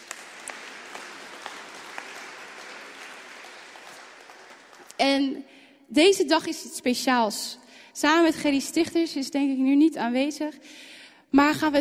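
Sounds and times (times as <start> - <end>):
applause: 0.0 - 5.2
speech: 5.0 - 11.7.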